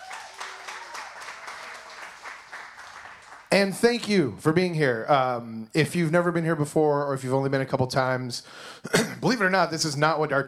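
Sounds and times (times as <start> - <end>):
audience applause: 0.0 - 3.6
speech: 3.5 - 10.4.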